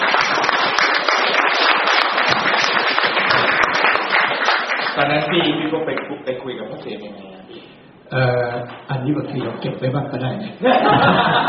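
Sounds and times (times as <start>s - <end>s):
audience clapping: 0.0s - 6.2s
speech: 5.0s - 11.4s
laughter: 10.6s - 11.4s.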